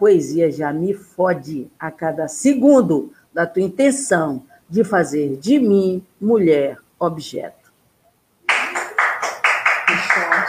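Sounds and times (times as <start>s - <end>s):
speech: 0.0s - 7.6s
applause: 8.5s - 10.4s.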